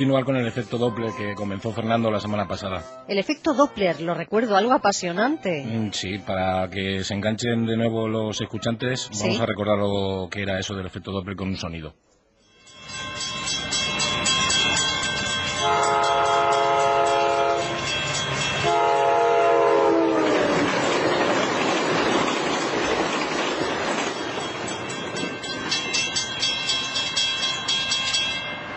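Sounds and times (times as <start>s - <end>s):
passing train: 0.0s - 10.4s, 12.4s - 28.7s
speech: 0.0s - 12.1s
bell: 12.4s - 18.9s, 24.0s - 28.7s.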